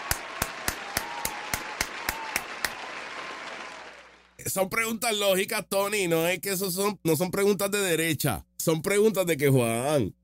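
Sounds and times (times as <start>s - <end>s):
sharp evenly spaced hand claps: 0.0s - 4.3s
speech: 4.4s - 10.2s.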